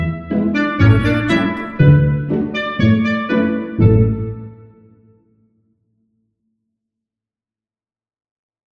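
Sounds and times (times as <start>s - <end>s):
light family comedy music: 0.0s - 4.5s.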